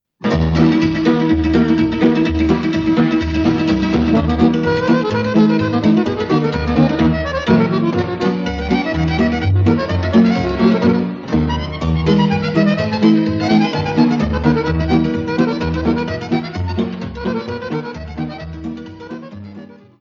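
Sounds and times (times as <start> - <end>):
Romanian folk dance music from Muntenia: 0.0 - 19.9.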